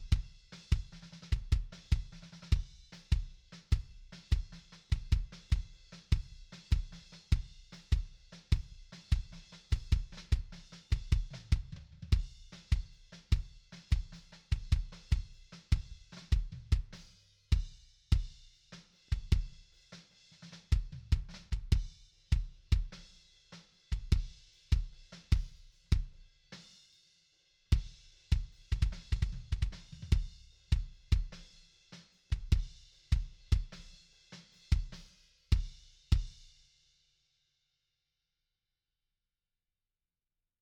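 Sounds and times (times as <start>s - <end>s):
kick drum: 0.0s - 18.5s, 19.1s - 19.7s, 20.7s - 23.2s, 23.9s - 26.2s, 27.7s - 31.6s, 32.3s - 34.0s, 34.7s - 36.5s.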